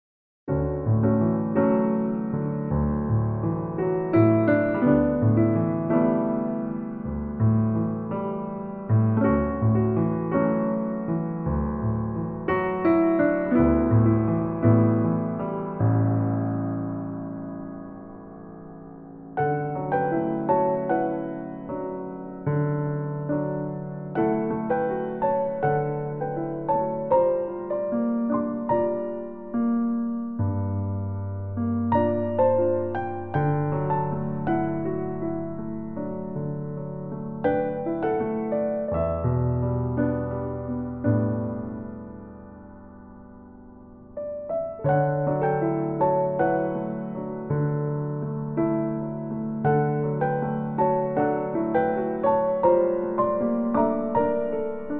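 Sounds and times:
solo piano: 0.5s - 54.9s.

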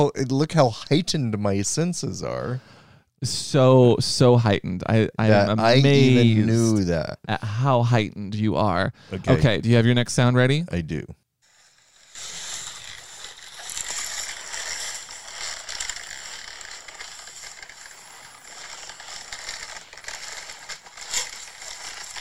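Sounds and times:
speech: 0.0s - 11.2s
leather jacket creaking as it is put on: 11.8s - 22.1s.

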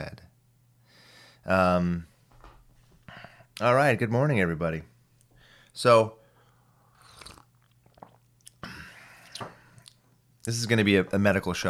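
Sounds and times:
faint steady hum: 0.0s - 11.6s
speech: 1.5s - 2.1s, 3.6s - 4.9s, 5.8s - 6.2s, 10.4s - 11.6s
person chewing breakfast: 7.0s - 8.6s.

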